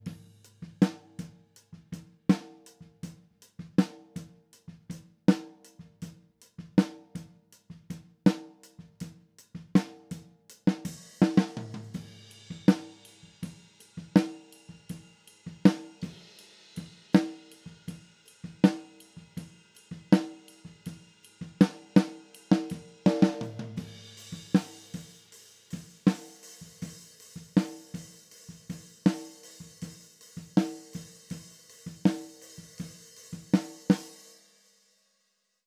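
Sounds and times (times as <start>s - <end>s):
snare drum: 0.0s - 1.3s, 8.3s - 34.2s.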